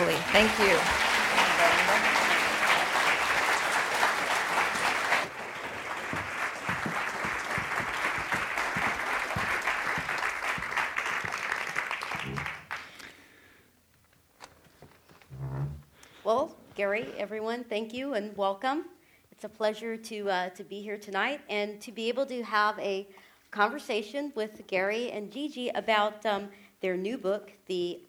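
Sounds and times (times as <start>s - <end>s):
audience applause welcoming three speakers at an evening book program: 0.0s - 13.0s
speech: 0.2s - 2.2s, 16.8s - 28.0s.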